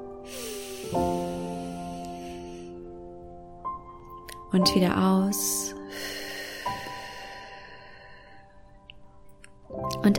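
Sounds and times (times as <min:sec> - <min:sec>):
deep breath in during a guided breathing exercise: 0:00.2 - 0:02.9, 0:05.9 - 0:08.6
speech: 0:00.9 - 0:01.2, 0:04.5 - 0:06.2.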